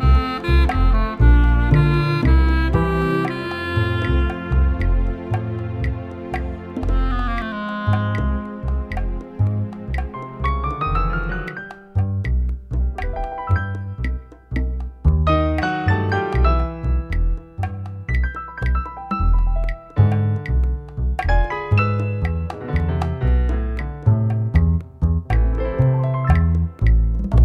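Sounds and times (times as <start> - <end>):
clarinet: 0.0 - 9.4
piano: 0.0 - 27.4.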